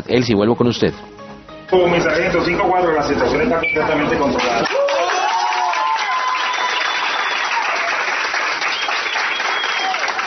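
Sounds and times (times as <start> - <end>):
speech: 0.0 - 1.1, 1.7 - 5.0
group of people applauding: 4.4 - 10.2
faint cheering: 4.5 - 10.2
whistle-like tones: 6.4 - 7.5, 8.7 - 10.0.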